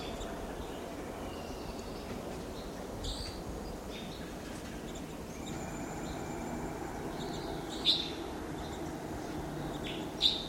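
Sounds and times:
steady rushing hiss: 0.0s - 10.4s
small flock of Type 2 crossbills giving chip calls: 4.9s - 10.4s.

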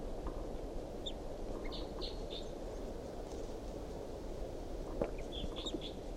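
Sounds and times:
rumbling outdoor background: 0.0s - 6.1s
wild bird calling in response to decoys: 1.0s - 2.6s, 4.9s - 6.1s.

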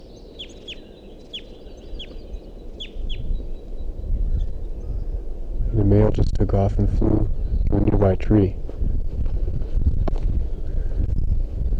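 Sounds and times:
begging calls of young birds from nest: 0.0s - 8.8s
steady low rumbling background: 4.0s - 11.7s
speech: 5.9s - 8.6s.

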